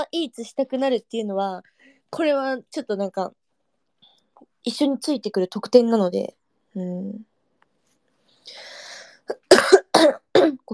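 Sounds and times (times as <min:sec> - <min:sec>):
speech: 0:00.0 - 0:03.4, 0:04.4 - 0:07.3
coughing from phlegm in the throat: 0:09.3 - 0:10.6.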